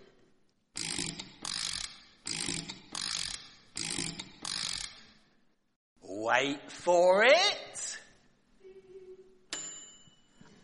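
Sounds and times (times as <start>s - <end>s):
crank handle being turned on a machine, ratcheting: 0.8s - 5.2s
speech: 6.3s - 7.9s.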